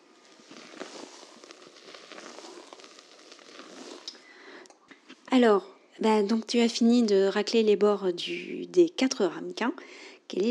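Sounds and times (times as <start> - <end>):
beaten egg whites softly crackling with warm chocolate: 0.0 - 5.2
speech: 5.4 - 10.5.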